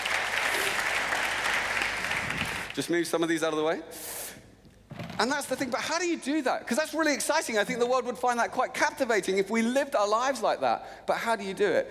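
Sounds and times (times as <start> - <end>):
crowd applause: 0.0 - 2.8
speech: 2.8 - 4.2, 5.2 - 11.8.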